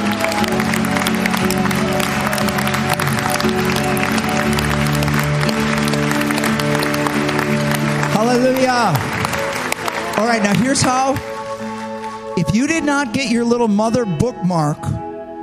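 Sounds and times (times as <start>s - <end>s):
audience applause: 0.0s - 12.4s
speech: 8.2s - 9.1s, 10.2s - 11.3s, 12.4s - 15.0s.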